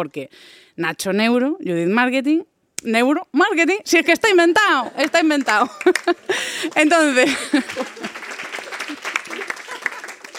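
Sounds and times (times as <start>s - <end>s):
speech: 0.0s - 8.2s
laughter: 4.9s - 10.3s
audience applauding: 5.0s - 10.3s.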